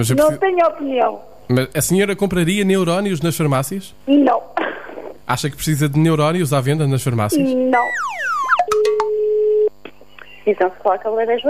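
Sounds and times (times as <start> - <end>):
speech: 0.0 - 8.2, 10.4 - 11.4
steady pure telephone line tone: 7.4 - 9.8.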